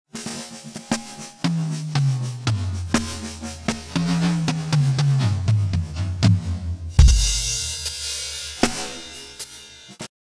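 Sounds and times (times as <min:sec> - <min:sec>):
drum solo: 0:00.1 - 0:10.1.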